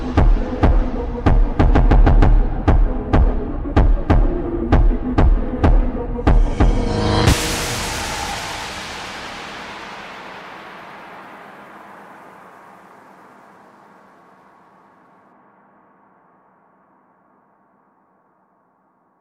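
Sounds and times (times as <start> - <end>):
super slowed music with reverb: 0.0 - 14.8.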